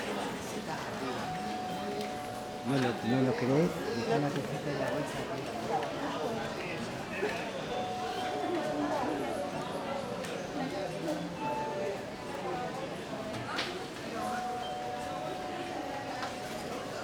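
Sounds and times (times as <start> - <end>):
murmur of people in a sanatorium entrance hall: 0.0 - 17.0
call bells ringing in a sanatorium entrance hall: 1.3 - 3.9, 14.3 - 17.0.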